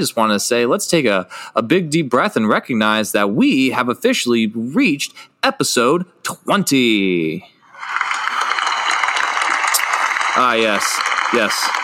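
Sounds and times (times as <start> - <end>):
speech: 0.0 - 8.0, 10.4 - 11.8
studio audience applause sound effect: 7.7 - 11.8.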